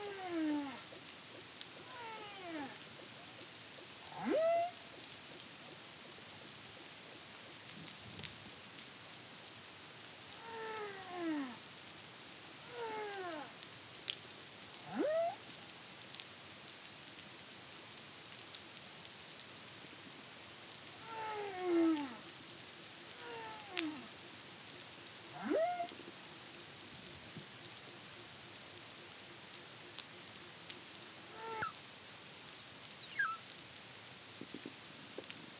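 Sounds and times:
hiss: 0:00.0 - 0:35.5
humpback whale song: 0:04.1 - 0:04.8, 0:14.9 - 0:15.4, 0:25.4 - 0:25.9, 0:33.0 - 0:33.4.

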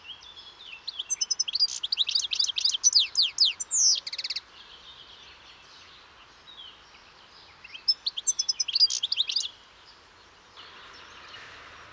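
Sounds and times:
European goldfinch Carduelis carduelis song: 0:00.0 - 0:06.0, 0:07.4 - 0:09.6.

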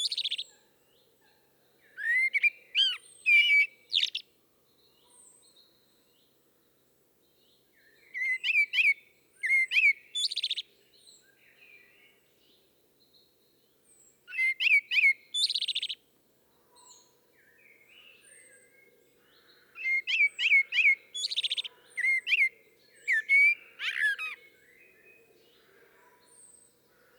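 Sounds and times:
common blackbird singing mellow whistled phrases and scratchy twitters: 0:00.0 - 0:00.5, 0:01.9 - 0:04.2, 0:07.8 - 0:12.0, 0:14.3 - 0:16.0, 0:16.9 - 0:27.1.

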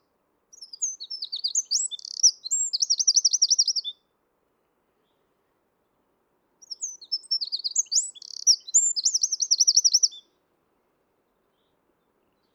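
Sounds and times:
Eurasian wren Troglodytes troglodytes singing: 0:00.5 - 0:03.9, 0:06.6 - 0:10.2.

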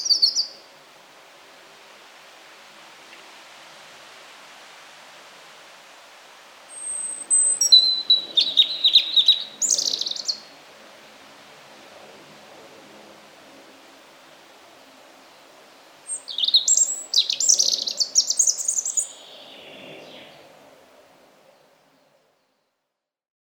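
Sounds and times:
European robin Erithacus rubecula singing: 0:00.0 - 0:00.6, 0:06.7 - 0:10.5, 0:16.1 - 0:20.4.

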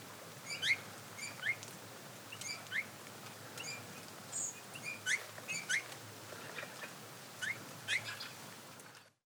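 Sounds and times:
Eurasian bullfinch Pyrrhula pyrrhula uttering soft piping notes: 0:00.4 - 0:01.7, 0:03.6 - 0:06.0, 0:06.8 - 0:08.4.

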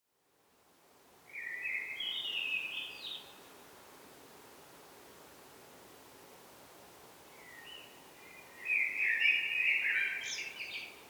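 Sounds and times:
Eurasian blackbird Turdus merula song: 0:01.3 - 0:03.3, 0:07.4 - 0:11.0.

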